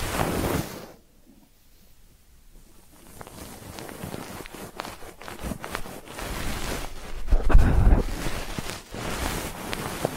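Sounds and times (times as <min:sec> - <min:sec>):
soft scratching and crackling taps: 0:00.0 - 0:10.1
ear cleaning rustling and rubbing: 0:02.8 - 0:10.1.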